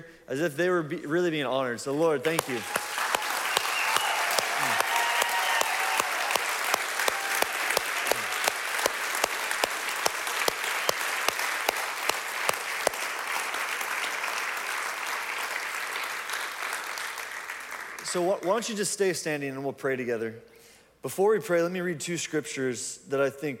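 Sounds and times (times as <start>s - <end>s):
speech: 0.3s - 2.8s, 18.4s - 23.5s
standing crowd clapping and cheering: 2.3s - 18.7s.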